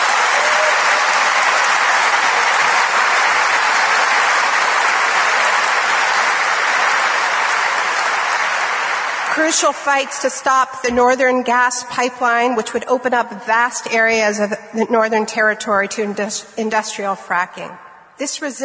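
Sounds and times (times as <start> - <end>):
audience applause: 0.0 - 9.7
speech: 9.4 - 18.6.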